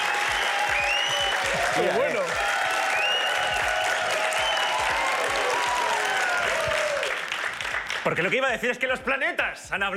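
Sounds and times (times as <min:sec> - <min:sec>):
cheers and whistles: 0:00.0 - 0:07.2
audience applause: 0:00.0 - 0:08.6
speech: 0:01.8 - 0:02.4, 0:08.1 - 0:09.9.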